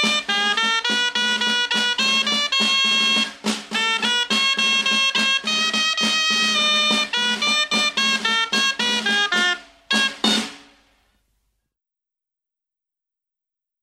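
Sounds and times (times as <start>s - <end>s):
traditional dance music from Valladolid: 0.0s - 10.8s.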